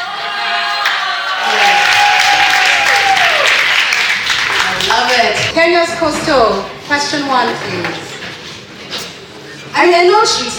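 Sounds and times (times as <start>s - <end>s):
audience applause at a live quiz event: 0.8s - 5.5s
speech: 5.6s - 8.1s, 9.8s - 10.5s.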